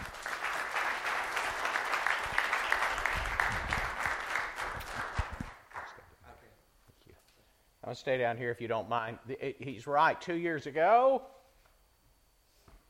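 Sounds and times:
church congregation applause greeting a guest speaker: 0.0 - 6.0
speech: 7.9 - 11.4.

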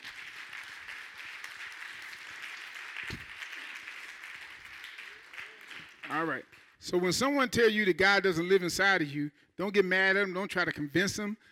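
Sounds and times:
hand clapping: 0.0 - 6.8
speech: 6.1 - 11.4.

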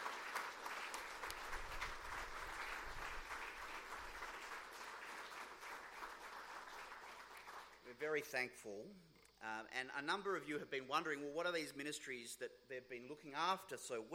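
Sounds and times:
round of applause: 0.0 - 8.0
speech: 8.0 - 14.1.

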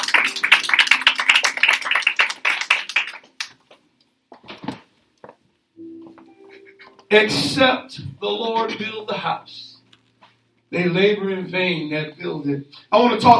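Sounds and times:
crowd clapping: 0.0 - 3.8
speech: 7.1 - 9.6, 10.7 - 13.3.

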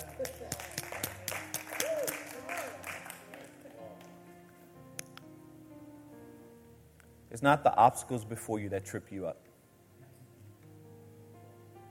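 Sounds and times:
audience applause: 0.0 - 4.3
speech: 7.4 - 9.5.

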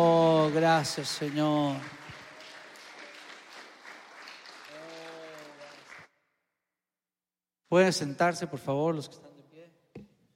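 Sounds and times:
crowd applauding: 0.0 - 6.1
speech: 0.6 - 2.0, 7.7 - 9.3.

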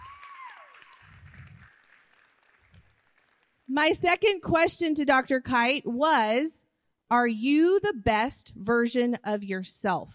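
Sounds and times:
audience clapping: 0.0 - 3.8
speech: 3.7 - 10.1.

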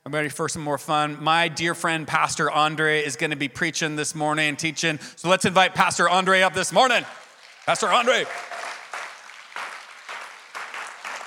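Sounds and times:
speech: 0.1 - 8.6
audience clapping: 6.7 - 11.2.

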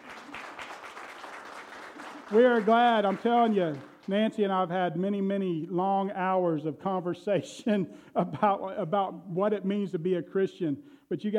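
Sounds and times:
audience applause: 0.0 - 4.1
speech: 2.3 - 11.3.

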